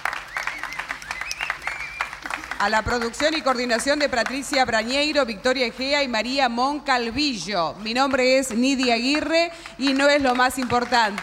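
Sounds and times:
high cheers and whistles: 0.0 - 2.4
audience applause: 0.0 - 4.4, 9.8 - 11.2
speech: 2.6 - 11.2.

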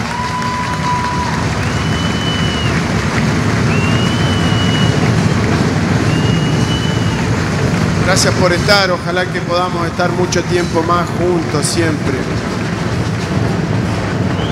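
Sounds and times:
long high whistles: 0.0 - 7.6, 14.2 - 14.5
crowd applauding: 0.0 - 14.5
speech: 8.1 - 12.6.

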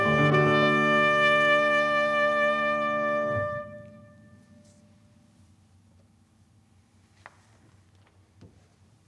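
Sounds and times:
trumpet in a sonata: 0.0 - 4.9
piano in a sonata: 0.0 - 5.2.

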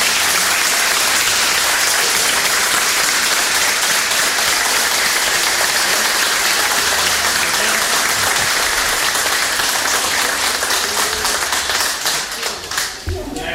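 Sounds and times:
audience applause: 0.0 - 13.4.

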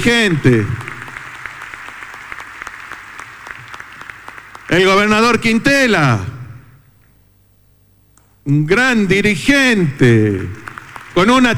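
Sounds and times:
speech: 0.0 - 0.8, 4.7 - 6.4, 8.5 - 11.5
crowd applause: 0.0 - 5.2, 10.3 - 11.5.

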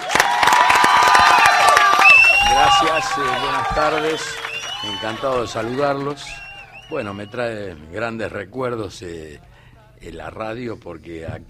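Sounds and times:
audience applause for a guest musician in a radio studio: 0.0 - 7.4
speech: 3.0 - 11.4.

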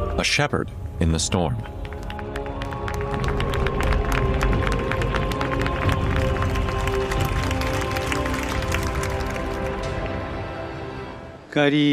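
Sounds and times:
speech: 0.2 - 1.8, 11.5 - 11.8
crowd applauding the Pope: 1.4 - 10.6.

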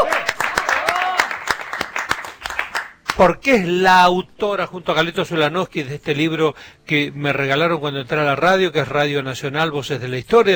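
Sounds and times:
applause: 0.0 - 3.2
speech: 3.2 - 10.5.

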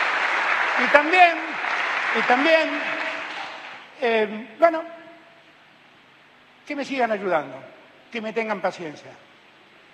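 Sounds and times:
crowd applause: 0.0 - 3.9
speech: 0.8 - 1.5, 2.1 - 3.0, 4.0 - 5.0, 6.7 - 9.2.

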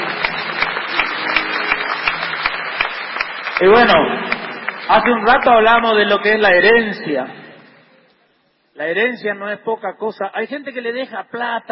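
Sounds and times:
audience applause: 0.0 - 5.7
speech: 3.6 - 7.4, 8.8 - 11.7.

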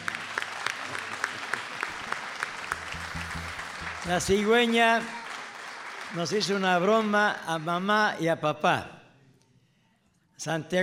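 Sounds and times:
applause: 0.0 - 8.0
speech: 4.0 - 5.2, 6.1 - 9.0, 10.4 - 10.8.

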